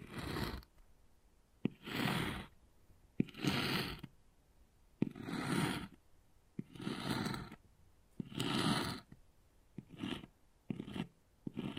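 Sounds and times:
wood carving scraping strokes: 0.0 - 0.7, 1.6 - 2.6, 3.2 - 4.1, 5.0 - 6.0, 6.6 - 7.6, 8.2 - 9.2, 9.8 - 11.7.

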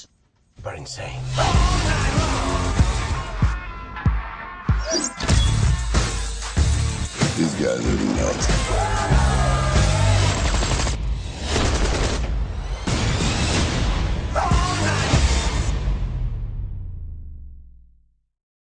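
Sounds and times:
speech: 0.0 - 2.4, 7.6 - 9.2
driving action-trailer music: 1.0 - 16.7
rapid gunfire in action movie trailer: 10.0 - 12.4.

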